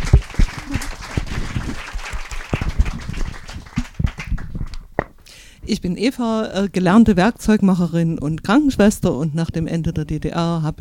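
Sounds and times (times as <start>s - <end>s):
applause: 0.0s - 4.9s
speech: 5.7s - 10.7s.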